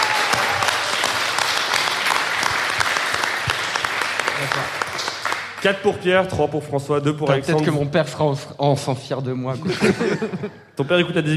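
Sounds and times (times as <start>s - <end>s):
loud audience applause: 0.0s - 5.8s
speech: 4.5s - 4.8s, 5.6s - 11.3s
laughter: 9.5s - 10.8s.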